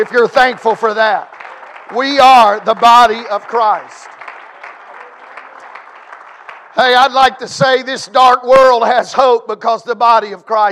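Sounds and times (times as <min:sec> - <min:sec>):
speech: 0:00.0 - 0:01.3, 0:01.9 - 0:04.1, 0:06.8 - 0:10.7
audience hand clapping: 0:00.0 - 0:07.9.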